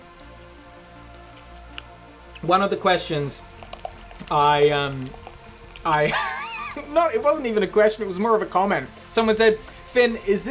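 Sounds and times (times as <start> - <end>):
beer can cracking open and fizzing: 1.3 - 2.5, 3.4 - 6.8
speech: 2.4 - 3.6, 4.2 - 5.2, 5.8 - 10.4
laughter: 6.0 - 6.9.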